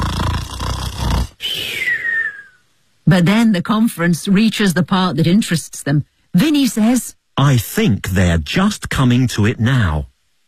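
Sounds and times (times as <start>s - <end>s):
voice imitating snoring: 0.0s - 2.0s
speech: 3.1s - 10.1s.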